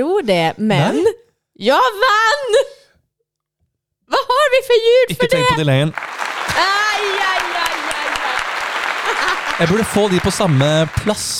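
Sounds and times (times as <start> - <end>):
speech: 0.0 - 2.7, 4.6 - 7.3, 9.6 - 11.3
big applause sound effect: 5.9 - 11.3
laughter: 6.2 - 11.3.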